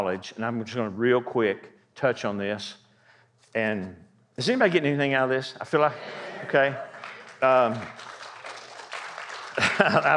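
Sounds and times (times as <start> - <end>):
speech: 0.0 - 2.8, 3.5 - 8.1, 9.6 - 10.1
laughter: 5.8 - 8.0, 9.4 - 10.1
audience clapping: 6.5 - 10.1.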